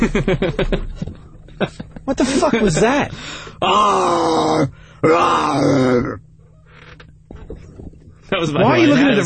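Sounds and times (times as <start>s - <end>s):
laughter: 0.0s - 3.1s
speech: 0.0s - 6.2s, 8.3s - 9.2s
person imitating a lion's roar: 3.6s - 6.2s.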